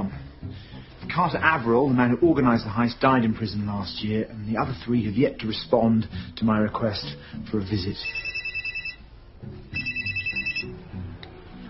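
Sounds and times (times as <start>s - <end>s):
speech: 1.2s - 8.3s
telephone ringing: 7.9s - 9.1s, 9.8s - 10.8s.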